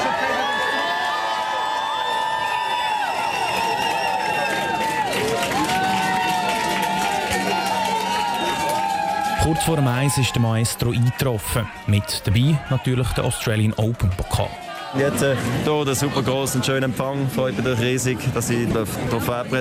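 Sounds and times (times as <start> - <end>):
screams and whoops: 0.0 - 11.1
crowd cheering and shouting at a welcome reception: 0.0 - 16.4
speech: 9.5 - 19.5.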